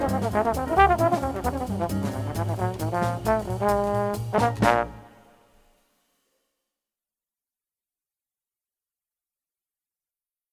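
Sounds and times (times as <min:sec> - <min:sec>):
trombone playing fast: 0:00.0 - 0:05.4.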